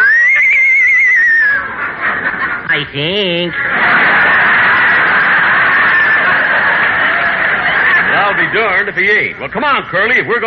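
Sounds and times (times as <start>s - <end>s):
horse whinnying: 0.0s - 1.6s
laughter: 0.0s - 9.2s
speech: 2.8s - 4.1s, 8.3s - 10.4s.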